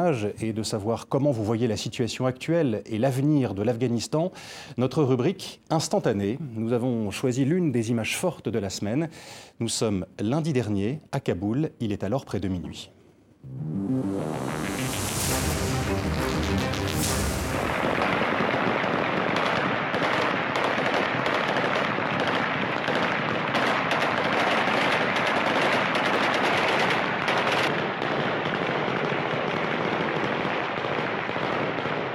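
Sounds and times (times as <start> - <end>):
speech: 0.0 - 15.1
celebratory gunfire shot into the air in Kabul: 15.1 - 32.0.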